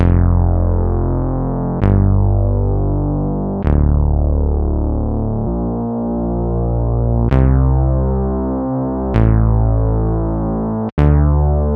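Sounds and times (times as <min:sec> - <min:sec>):
freeze bass: 0:00.0 - 0:11.7.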